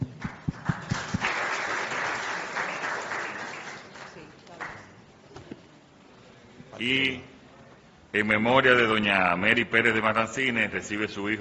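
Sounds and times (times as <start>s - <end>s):
audience applause: 0.0s - 4.9s
speech: 6.8s - 7.3s, 8.2s - 11.3s.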